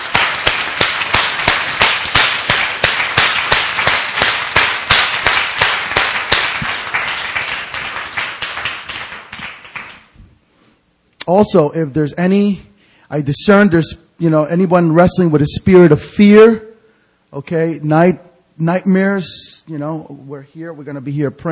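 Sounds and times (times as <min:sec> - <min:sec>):
audience clapping: 0:00.0 - 0:10.2
speech: 0:11.3 - 0:16.7, 0:17.3 - 0:21.5.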